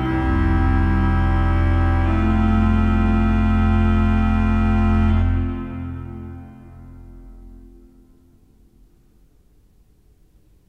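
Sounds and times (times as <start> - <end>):
pipe organ with Holfluit, Bassoon, Oboe, Subbass and coupler: 0.0 - 7.9.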